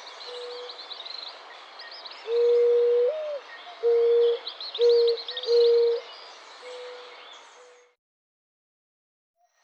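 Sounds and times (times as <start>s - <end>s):
birds singing in Guadeloupe: 0.0s - 8.0s
Zenaida dove singing in Guadeloupe: 2.3s - 6.0s.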